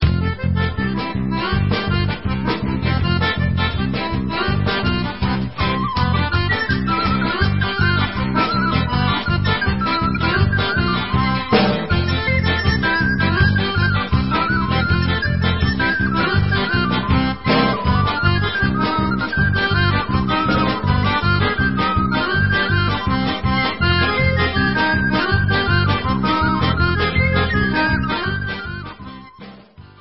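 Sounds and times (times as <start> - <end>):
Polish krakowiak instrumental: 0.0 - 29.9.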